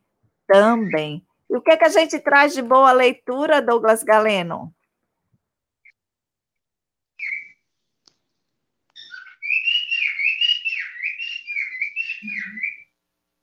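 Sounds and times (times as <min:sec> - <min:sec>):
pet bird singing: 0:00.5 - 0:01.2, 0:07.2 - 0:07.6, 0:09.0 - 0:12.9
speech: 0:00.5 - 0:04.8.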